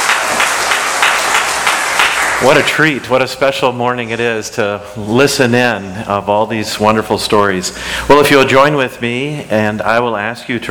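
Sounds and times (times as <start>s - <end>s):
audience applause: 0.0s - 3.0s
speech: 2.4s - 10.6s.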